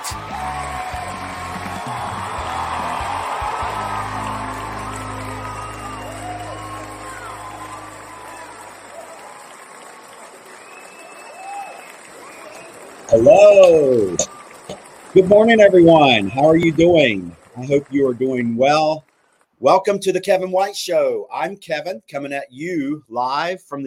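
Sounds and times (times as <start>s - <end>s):
whoops and cheers: 0.0s - 14.7s
audience applause welcoming a show host: 0.0s - 19.0s
low sustained musical tone: 2.2s - 9.4s
speech: 13.2s - 14.2s, 15.2s - 23.8s.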